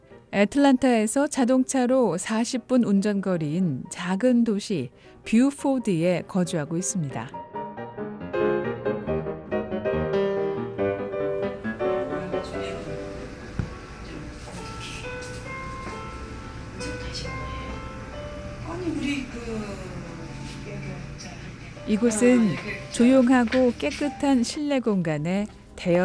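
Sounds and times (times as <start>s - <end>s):
soft calm instrumental background music in a spa: 0.0s - 26.0s
speech: 0.3s - 7.4s, 22.0s - 26.0s
room ambience: 11.6s - 23.6s.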